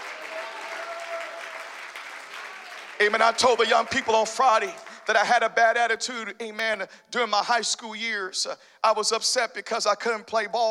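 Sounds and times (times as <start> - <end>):
audience clapping hands: 0.0 - 5.4
speech: 3.0 - 10.6.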